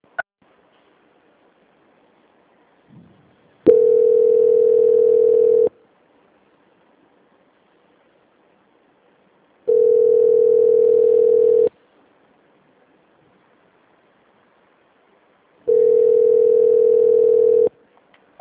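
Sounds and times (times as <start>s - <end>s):
telephone ringing tones during a call transfer: 3.7s - 5.7s, 9.7s - 11.7s, 15.7s - 17.7s.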